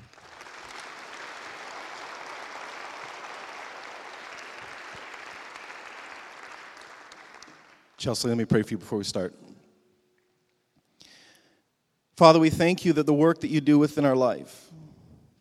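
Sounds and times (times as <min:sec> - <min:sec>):
audience applause welcoming a speaker at a campus event: 0:00.0 - 0:08.0
speech: 0:08.0 - 0:09.5, 0:12.2 - 0:14.8.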